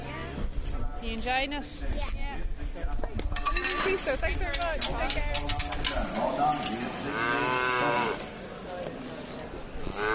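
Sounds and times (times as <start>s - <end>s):
voices and bustle at Kilmallock Mart: 0.0s - 10.1s
speech: 1.0s - 8.4s, 10.0s - 10.1s
calves mooing at Kilmallock Mart livestock market in County Limerick: 7.0s - 8.2s.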